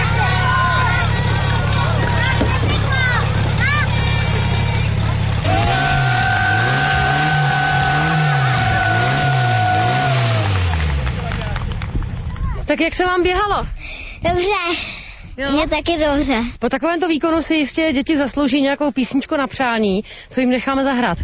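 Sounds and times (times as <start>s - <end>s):
PS-12 portable fire pump engine running: 0.0s - 12.0s
speech: 12.8s - 21.2s.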